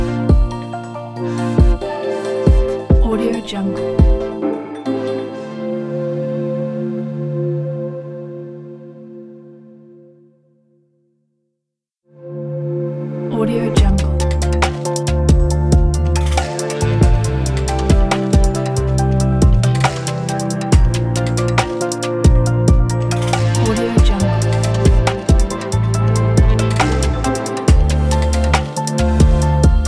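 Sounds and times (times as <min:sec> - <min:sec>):
relaxing chill future bass music: 0:00.0 - 0:06.6, 0:13.3 - 0:29.8.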